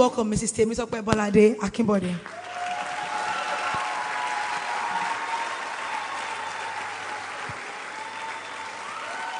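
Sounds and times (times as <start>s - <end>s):
speech: 0.0s - 2.4s
audience applause: 2.3s - 9.3s.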